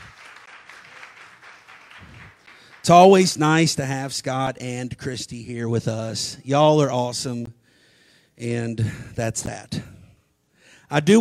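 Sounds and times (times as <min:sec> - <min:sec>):
audience hand clapping: 0:00.0 - 0:03.4
speech: 0:02.8 - 0:07.6, 0:08.4 - 0:09.9, 0:10.9 - 0:11.1.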